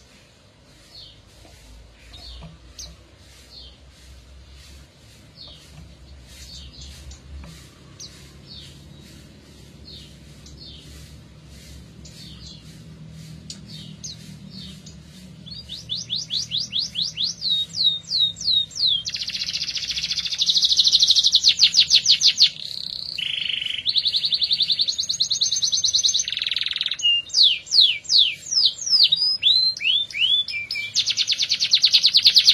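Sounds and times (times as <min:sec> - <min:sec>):
Atlantic canary song: 0:00.8 - 0:32.5.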